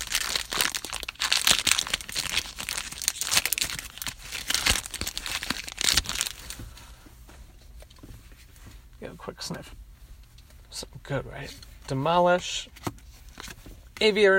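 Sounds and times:
card booster pack being torn open: 0.0 - 6.4
speech: 9.5 - 9.8, 11.1 - 12.8, 14.0 - 14.3.

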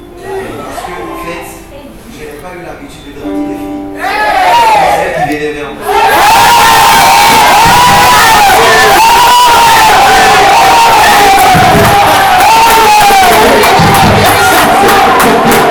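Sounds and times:
speech: 2.4 - 3.5
children shouting: 4.0 - 5.2, 5.9 - 15.6.

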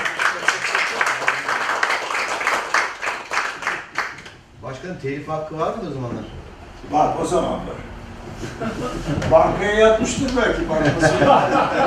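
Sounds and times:
audience applause: 0.0 - 4.3
speech: 4.8 - 11.8
laughter: 8.4 - 11.8.

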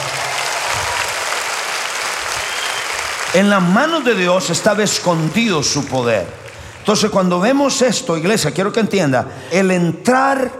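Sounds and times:
audience applause: 0.0 - 7.1
speech: 3.3 - 10.5.

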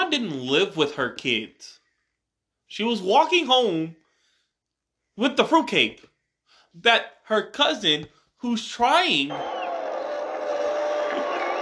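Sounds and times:
speech: 0.1 - 1.8, 2.7 - 4.0, 5.2 - 6.1, 6.8 - 9.6
crowd booing: 9.3 - 11.6.

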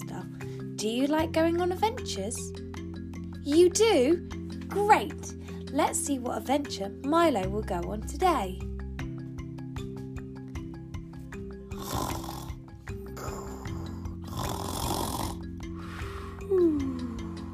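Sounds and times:
light music: 0.0 - 17.5
speech: 0.8 - 2.6, 3.5 - 8.7
snoring: 11.7 - 16.5.

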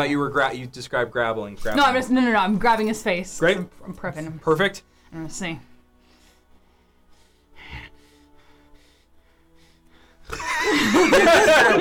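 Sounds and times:
speech: 0.0 - 5.7, 10.3 - 11.7
person imitating heavy, uncomfortable breathing of a terrified character: 5.8 - 10.4
laughter: 10.3 - 11.7.

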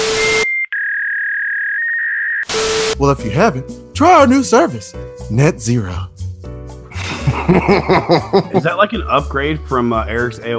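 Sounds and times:
fax machine tone: 0.0 - 3.0
speech: 3.0 - 6.1, 7.4 - 10.5
laughter: 6.9 - 8.8.

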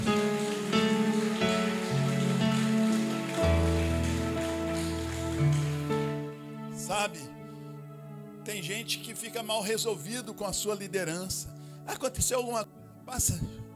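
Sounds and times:
audience applauding: 0.0 - 6.6
speech: 8.8 - 13.7.

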